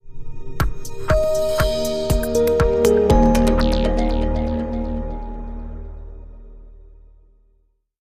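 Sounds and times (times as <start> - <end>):
sparkle effect: 1.0 - 6.4.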